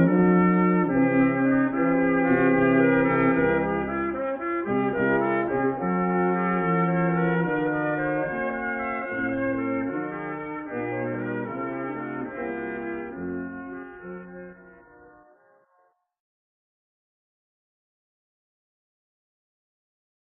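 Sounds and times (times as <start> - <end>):
regal brass music: 0.0 - 15.3.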